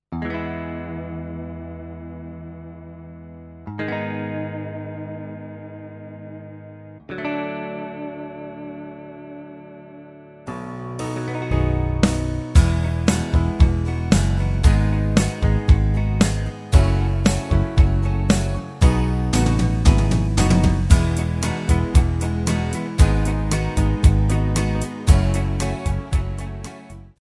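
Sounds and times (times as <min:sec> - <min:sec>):
karaoke backing track: 0:10.5 - 0:27.0.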